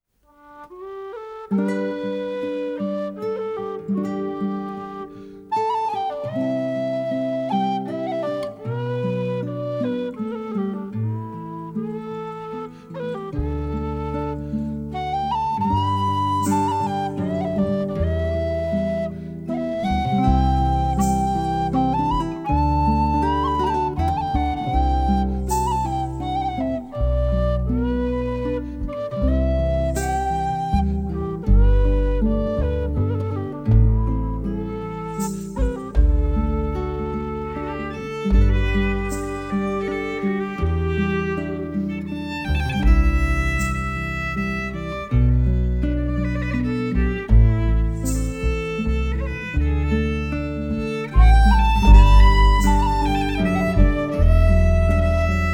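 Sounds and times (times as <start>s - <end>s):
instrumental music: 0.0s - 55.5s.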